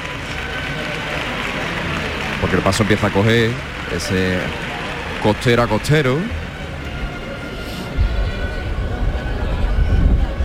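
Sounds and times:
crowd clapping: 0.0 - 7.6
faint murmur of voices: 0.0 - 10.4
speech: 2.4 - 6.4.

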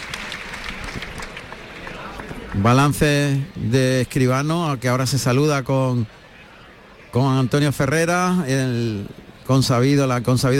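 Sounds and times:
bullring crowd clapping in a strong ovation: 0.0 - 3.6
murmur of bullring crowd voices: 0.0 - 10.5
speech: 2.6 - 6.2, 7.1 - 10.5.

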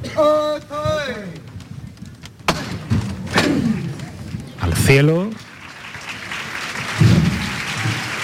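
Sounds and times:
speech: 0.2 - 1.2, 4.9 - 5.4
crowd applause: 3.7 - 8.2.

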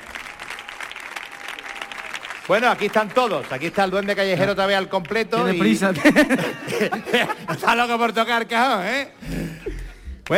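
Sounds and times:
strong audience applause: 0.0 - 7.2
speech: 2.5 - 10.3
laughter: 5.4 - 8.2, 9.2 - 10.3.

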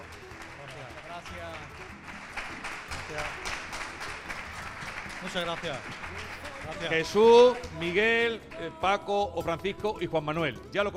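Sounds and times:
audience applause: 0.0 - 8.0
speech: 1.2 - 3.7, 5.2 - 10.9.

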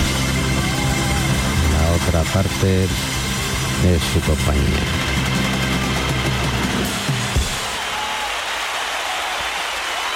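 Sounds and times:
audience applause: 0.1 - 2.0, 4.7 - 10.1
speech: 2.1 - 3.1, 3.8 - 5.1.

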